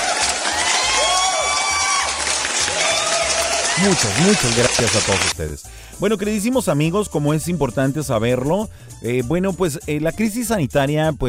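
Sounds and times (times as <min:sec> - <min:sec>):
applause: 0:00.0 - 0:05.3
crowd cheering: 0:00.0 - 0:05.3
speech: 0:03.8 - 0:11.2.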